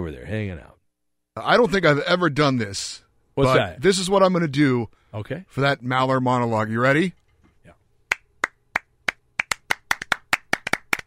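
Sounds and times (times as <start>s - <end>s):
speech: 0.0s - 0.8s, 1.4s - 7.2s
one person clapping hands: 8.1s - 11.0s.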